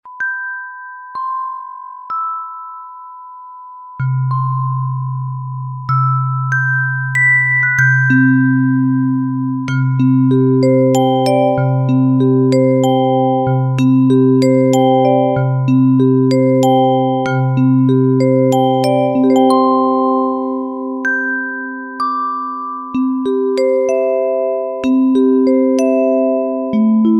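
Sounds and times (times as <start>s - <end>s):
music box: 0.1s - 27.1s.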